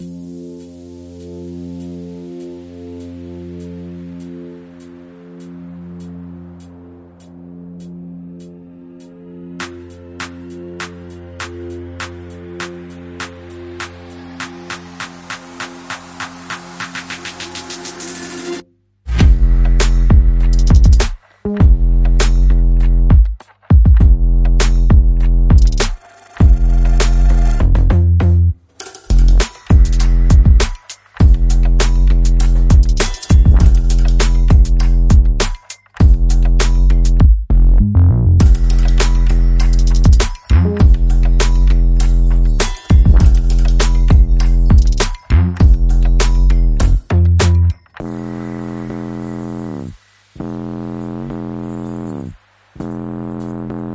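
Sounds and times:
drums with effects: 0:09.6 - 0:28.0, 0:28.8 - 0:37.5, 0:38.4 - 0:47.7
bass: 0:19.1 - 0:23.3, 0:23.9 - 0:53.9.

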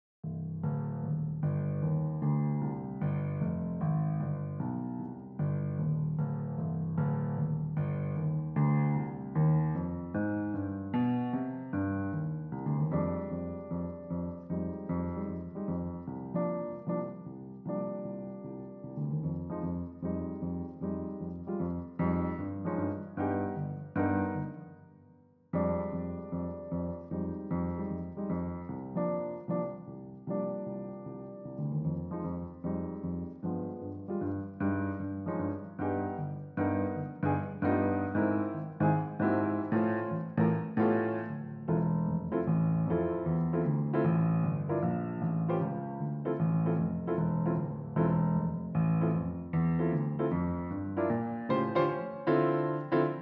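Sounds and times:
piano: 0:00.0 - 0:53.1.

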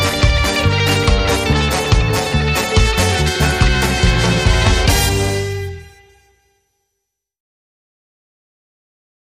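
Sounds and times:
southern music beat: 0:00.0 - 0:06.3.

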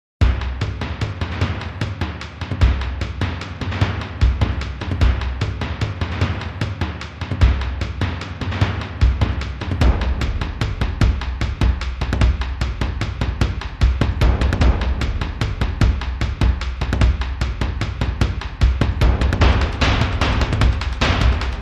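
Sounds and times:
mid drums: 0:00.2 - 0:21.5.

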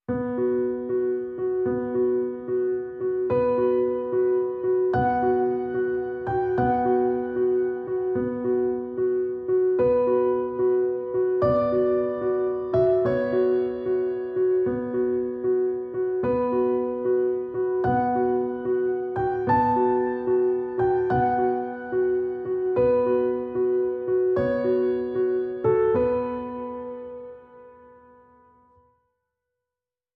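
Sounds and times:
solo piano: 0:00.0 - 0:29.0.

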